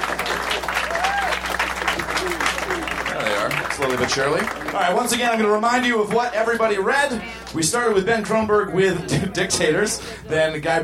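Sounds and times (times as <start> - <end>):
audience applause: 0.0 - 6.2
faint whistle or cheer: 0.9 - 1.5
speech: 3.9 - 10.8.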